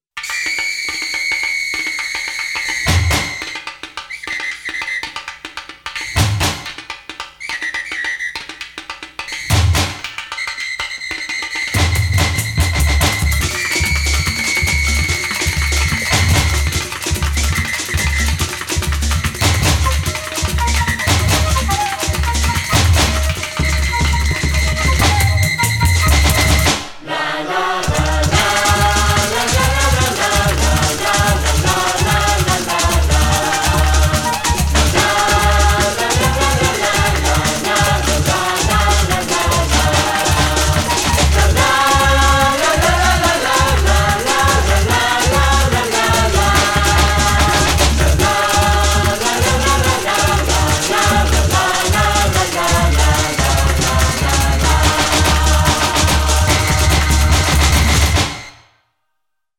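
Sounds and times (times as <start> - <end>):
samba music: 0.2 - 58.6.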